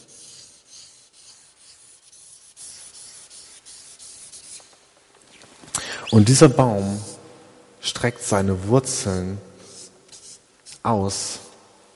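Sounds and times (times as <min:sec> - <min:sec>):
marker scratching on paper drawing thicker lines: 0:00.0 - 0:04.8, 0:09.6 - 0:10.8
speech: 0:06.1 - 0:07.1, 0:07.9 - 0:09.5, 0:10.8 - 0:11.4.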